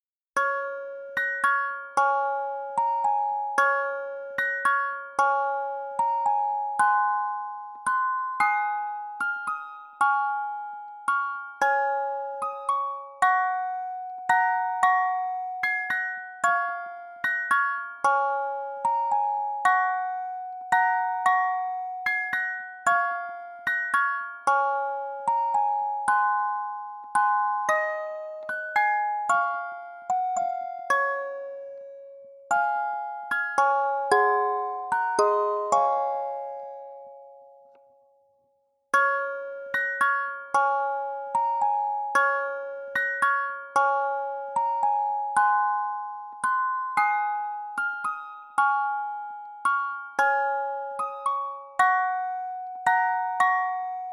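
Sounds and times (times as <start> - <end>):
Christmas music box melody: 0.4 - 38.0, 39.0 - 54.1.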